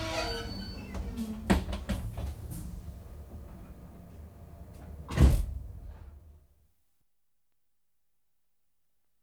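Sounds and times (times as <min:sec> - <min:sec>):
electric train starting: 0:00.0 - 0:04.9.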